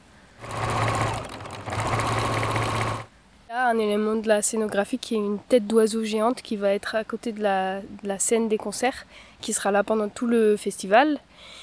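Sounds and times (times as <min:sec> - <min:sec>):
sewing machine stitching curtain fabric: 0:00.4 - 0:03.1
speech: 0:03.7 - 0:11.6.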